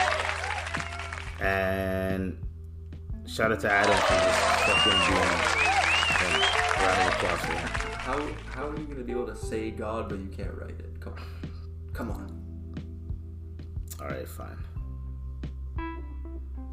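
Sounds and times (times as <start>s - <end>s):
applause: 0.0s - 1.4s, 3.8s - 8.9s
speech: 1.4s - 2.5s, 3.3s - 5.6s, 6.3s - 12.4s, 14.0s - 14.7s.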